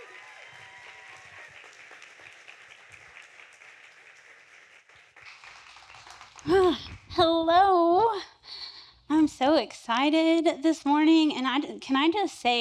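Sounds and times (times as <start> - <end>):
audience applause: 0.0 - 7.2
speech: 9.2 - 12.5.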